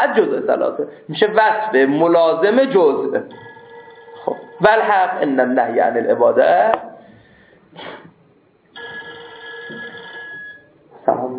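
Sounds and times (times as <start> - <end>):
speech: 0.0 - 3.5, 4.6 - 6.9, 11.1 - 11.3
telephone ringing during a class: 3.4 - 4.8, 8.8 - 10.8.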